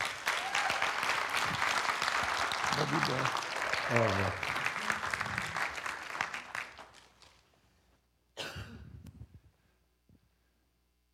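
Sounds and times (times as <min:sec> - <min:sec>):
audience applause welcoming a preacher: 0:00.0 - 0:07.4
speech: 0:02.8 - 0:04.5.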